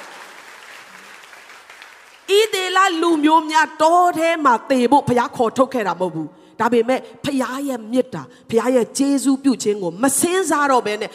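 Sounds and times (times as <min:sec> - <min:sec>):
congregation clapping hands in praise during a church service: 0:00.0 - 0:02.6
speech: 0:02.3 - 0:11.1.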